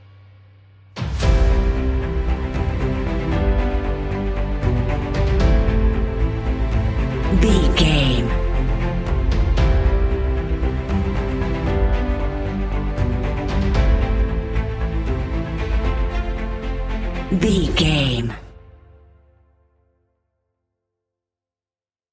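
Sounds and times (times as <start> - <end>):
uplifting epic inspirational music: 1.0 - 18.4.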